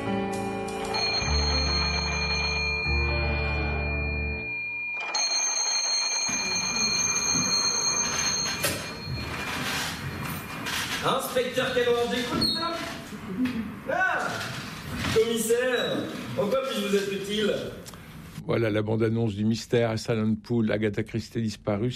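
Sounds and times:
telephone ringing: 0.8s - 12.1s
speech: 11.0s - 14.5s, 15.1s - 17.8s, 18.4s - 21.9s.

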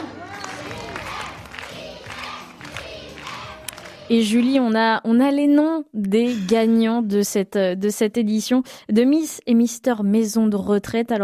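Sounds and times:
crowd cheering wildly: 0.0s - 4.6s
speech: 4.1s - 11.2s.

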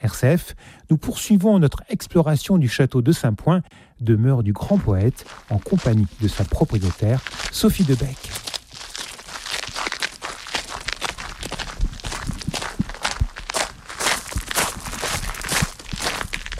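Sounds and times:
speech: 0.1s - 8.5s
footsteps climbing a narrow tower staircase at the Château de Saint-Point: 5.2s - 16.5s.

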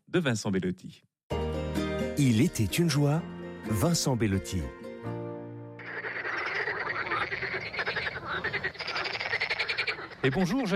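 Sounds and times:
speech: 0.1s - 1.1s, 2.2s - 5.2s, 10.2s - 10.7s
frogs croaking: 5.8s - 10.7s.

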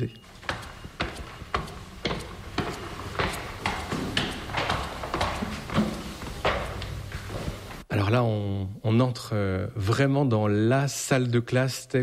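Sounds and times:
speech: 0.0s - 0.5s, 8.0s - 12.0s
footsteps of people walking up to a museum's first floor: 0.2s - 7.9s.

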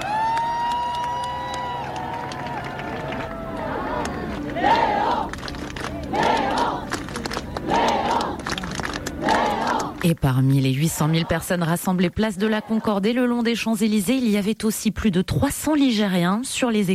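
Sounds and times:
high-pitched whoops and yells: 0.0s - 3.8s
large crowd cheering in acclaim: 0.0s - 10.1s
speech: 10.0s - 16.9s.

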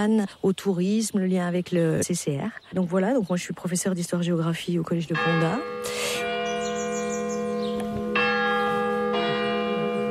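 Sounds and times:
speech: 0.0s - 6.3s
church bell ringing the quarter hour: 5.0s - 10.1s.

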